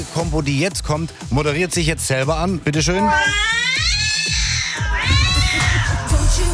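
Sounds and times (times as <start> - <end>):
speech: 0.1 - 3.8
cats meowing in a song: 2.8 - 6.4.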